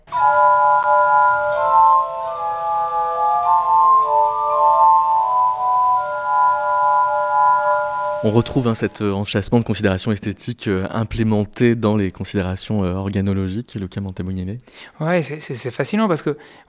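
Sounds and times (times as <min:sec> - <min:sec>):
glass harmonica playing: 0:00.0 - 0:09.2
speech: 0:08.2 - 0:16.6.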